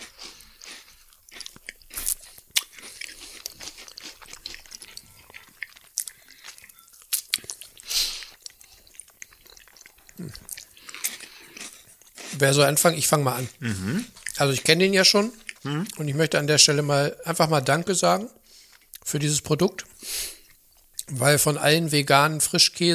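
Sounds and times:
homemade chestnut bread being bitten and chewed: 0.0s - 16.0s
speech: 12.4s - 18.4s, 19.1s - 19.8s, 21.2s - 22.9s.

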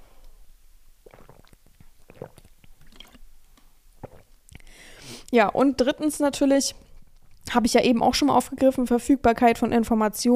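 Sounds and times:
person drinking: 1.0s - 3.3s, 4.0s - 5.4s
speech: 5.3s - 6.8s, 7.5s - 10.3s.

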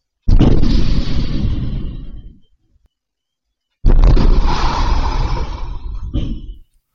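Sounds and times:
explosions blowing up a bank ATM: 0.2s - 2.4s, 3.8s - 6.6s.

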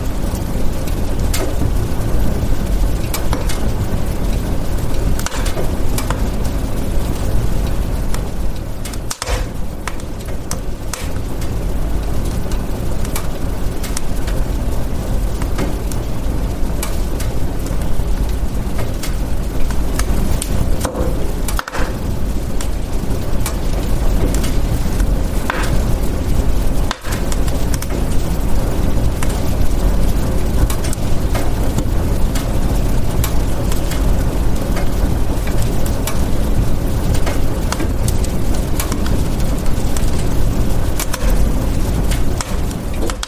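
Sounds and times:
dense low rumble: 0.0s - 43.1s
fireplace fire crackling: 0.0s - 43.2s
sharp pops and snaps of fireplace fire: 0.0s - 43.2s.

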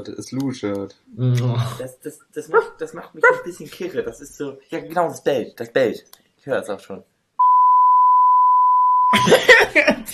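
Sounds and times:
speech: 0.0s - 7.1s, 9.1s - 10.1s
censor bleep: 7.4s - 9.3s.

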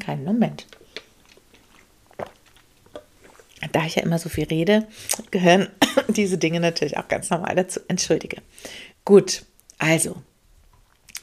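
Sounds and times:
speech: 0.1s - 0.8s, 3.8s - 10.3s
person gulping a drink: 0.7s - 3.7s.

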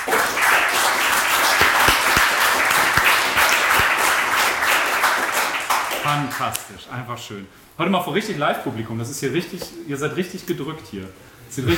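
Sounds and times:
audience applause: 0.0s - 6.6s
speech: 6.1s - 11.7s.

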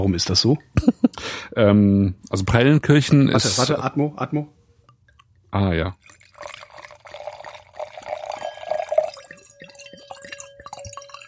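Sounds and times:
speech: 0.0s - 4.6s, 5.5s - 6.5s
white wine poured into a glass: 6.0s - 11.2s.

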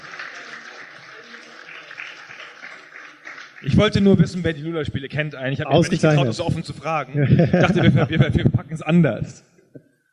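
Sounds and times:
group applause: 0.0s - 4.6s
speech: 3.6s - 9.5s
laughter: 7.1s - 8.7s.

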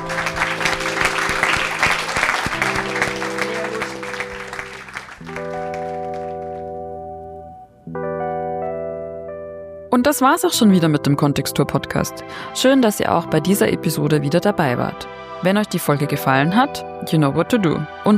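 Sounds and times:
live audience applause: 0.0s - 6.7s
speech: 10.0s - 18.1s.

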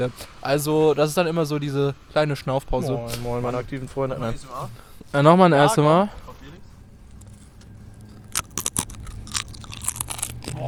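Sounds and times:
speech: 0.0s - 6.2s
low steady hum: 0.0s - 10.6s
potato chips being chewed: 7.2s - 10.6s.

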